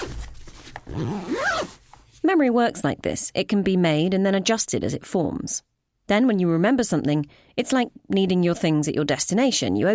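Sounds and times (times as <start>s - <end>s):
suitcase zipper being closed: 0.0s - 1.8s
speech: 0.9s - 9.9s.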